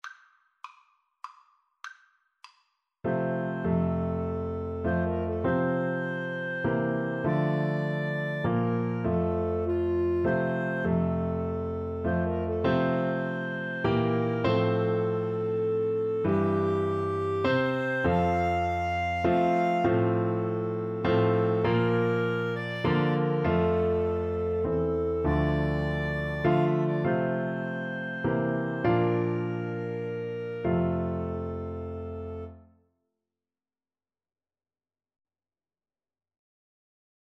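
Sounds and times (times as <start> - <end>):
flute and clarinet duet: 3.1 - 32.7.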